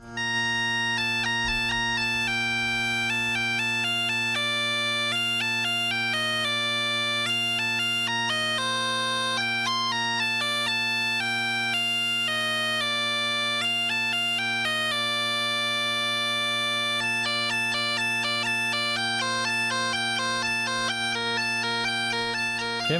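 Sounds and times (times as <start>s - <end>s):
bagpipe music: 0.0s - 22.9s.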